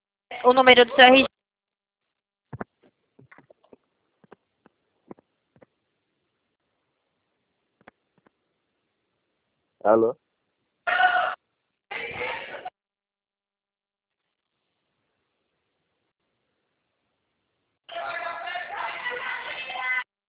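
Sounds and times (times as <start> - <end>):
speech: 0.4 - 1.3, 9.8 - 10.2
people shouting through a phone line: 10.9 - 12.7, 17.9 - 20.0.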